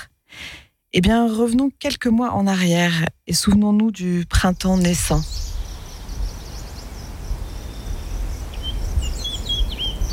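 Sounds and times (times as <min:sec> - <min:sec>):
speech: 0:00.9 - 0:05.5
birds singing: 0:04.5 - 0:10.1.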